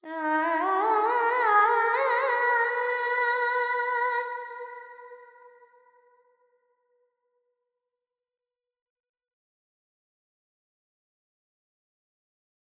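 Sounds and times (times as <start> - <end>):
Carnatic female vocal alap in Phrygian mode: 0.0 - 4.7.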